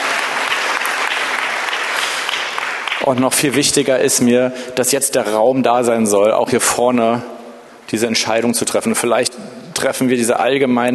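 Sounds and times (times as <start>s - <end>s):
audience applause: 0.0s - 3.2s
speech: 3.1s - 10.9s.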